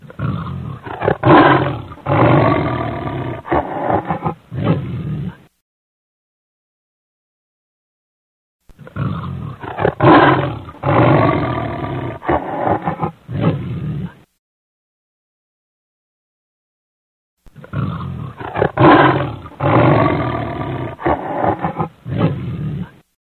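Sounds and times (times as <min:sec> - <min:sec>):
lion roaring: 0:00.0 - 0:05.5, 0:08.8 - 0:14.2, 0:17.6 - 0:23.0.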